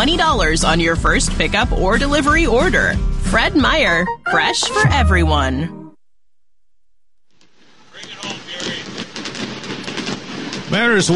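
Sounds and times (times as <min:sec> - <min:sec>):
speech: 0:00.0 - 0:05.8, 0:10.7 - 0:11.1
fireworks exploding in Chicago: 0:07.3 - 0:11.1.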